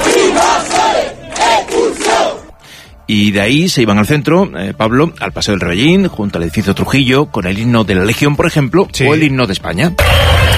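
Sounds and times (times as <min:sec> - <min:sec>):
crowd chanting protest slogans: 0:00.0 - 0:02.6
speech: 0:03.1 - 0:10.4.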